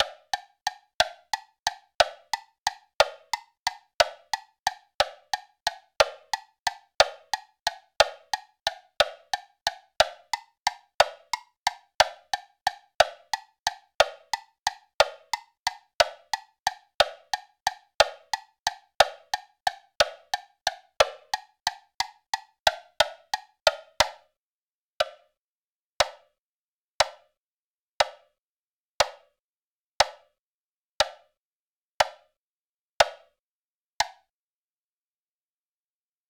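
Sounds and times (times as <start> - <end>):
woodblock: 0.0 - 24.3, 28.0 - 28.3, 30.0 - 30.4, 33.0 - 33.3, 34.0 - 34.3.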